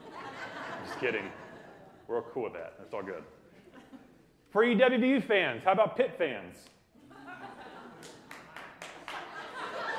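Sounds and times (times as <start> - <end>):
laughter: 0.0 - 4.4, 7.0 - 9.9
speech: 1.0 - 1.4, 2.1 - 3.4, 4.5 - 6.8
one audience member clapping: 8.0 - 9.3.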